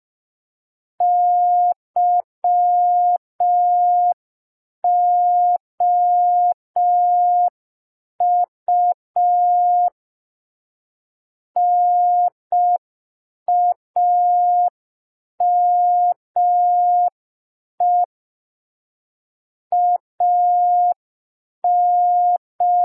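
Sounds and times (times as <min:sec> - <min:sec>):
Morse code letter P: 0:01.0 - 0:04.2, 0:04.8 - 0:07.5, 0:08.2 - 0:10.0, 0:11.6 - 0:12.8, 0:13.5 - 0:14.8, 0:15.4 - 0:17.2, 0:17.8 - 0:18.1, 0:19.7 - 0:21.0, 0:21.6 - 0:22.8.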